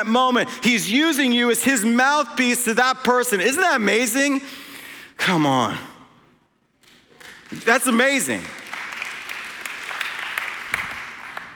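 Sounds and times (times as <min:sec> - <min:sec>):
speech: 0:00.0 - 0:05.9, 0:07.5 - 0:08.6
audience clapping: 0:06.8 - 0:11.5.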